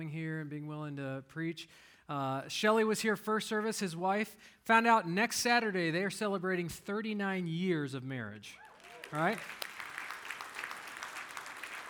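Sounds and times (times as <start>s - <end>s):
speech: 0.0s - 9.7s
crowd clapping: 8.6s - 11.8s.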